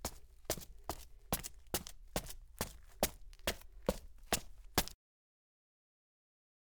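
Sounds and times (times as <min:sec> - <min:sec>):
sneaker footsteps on gritty cement: 0:00.0 - 0:05.0.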